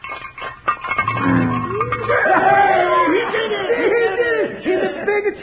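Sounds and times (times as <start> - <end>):
frying pan rattling: 0.0 - 2.7
laughter: 1.6 - 5.3.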